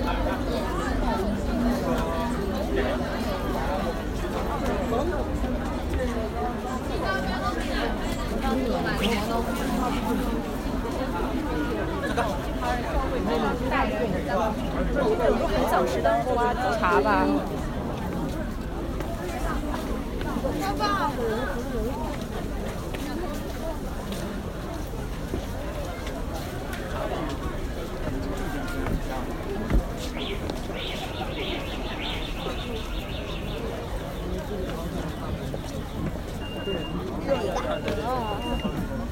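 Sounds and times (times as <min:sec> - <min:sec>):
crowd murmur on Nanluoguxiang street: 0:00.0 - 0:39.0.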